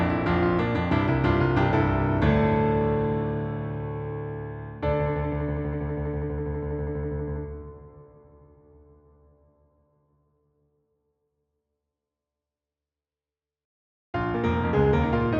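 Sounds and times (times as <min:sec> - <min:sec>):
piano: 0:00.0 - 0:10.4, 0:14.2 - 0:15.3.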